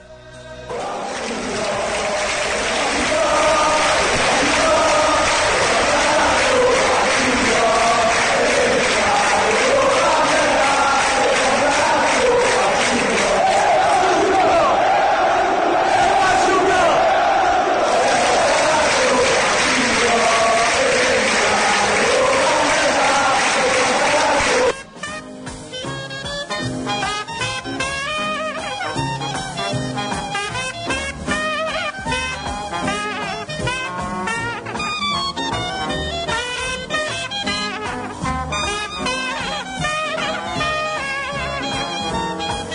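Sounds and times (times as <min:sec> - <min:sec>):
large crowd of football supporters singing a stadium chant: 0:00.3 - 0:24.8
trumpet melody: 0:00.8 - 0:42.7.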